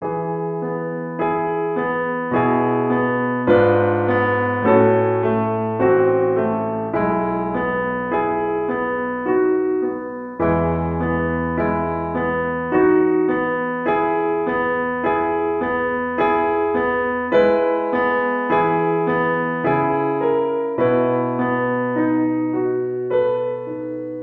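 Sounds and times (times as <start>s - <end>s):
classical sonata: 0.0s - 24.2s.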